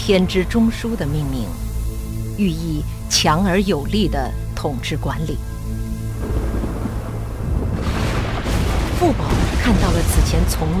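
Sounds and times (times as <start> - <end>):
speech: 0.0 - 1.7, 2.4 - 5.8, 9.0 - 10.7
thunderclap from a lightning strike: 6.2 - 10.7.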